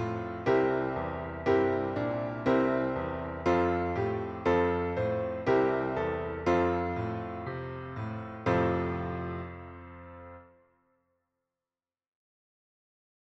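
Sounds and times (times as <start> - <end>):
MIDI hymn music: 0.0 - 10.0.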